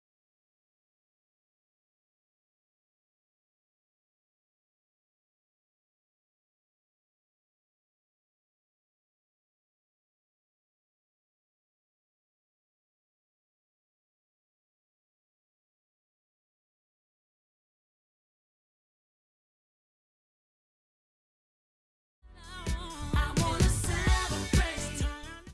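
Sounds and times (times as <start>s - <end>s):
music: 22.2s - 25.5s.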